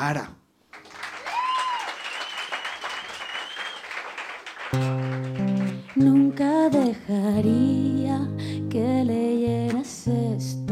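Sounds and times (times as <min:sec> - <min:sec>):
speech: 0:00.0 - 0:00.4, 0:06.0 - 0:10.6
audience applause: 0:00.7 - 0:06.4.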